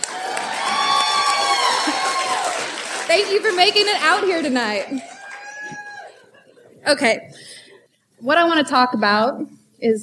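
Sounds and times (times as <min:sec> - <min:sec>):
audience cheering and whooping at a live comedy show: 0:00.0 - 0:06.3
speech: 0:03.1 - 0:05.1, 0:06.8 - 0:07.6, 0:08.2 - 0:10.0.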